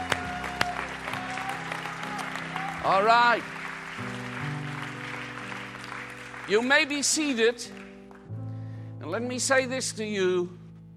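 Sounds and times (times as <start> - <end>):
audience clapping: 0.0 - 8.3
speech: 2.8 - 4.3, 6.5 - 7.8, 9.1 - 10.6.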